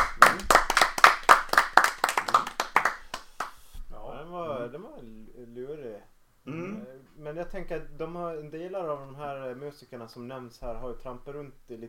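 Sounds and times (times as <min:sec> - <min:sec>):
applause, hands clapping: 0:00.0 - 0:03.8
speech: 0:07.4 - 0:11.8.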